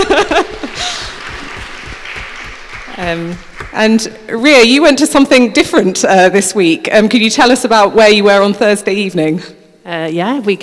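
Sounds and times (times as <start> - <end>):
people chuckling: 0.0 - 3.7
audience clapping: 0.0 - 5.2
speech: 3.0 - 10.6.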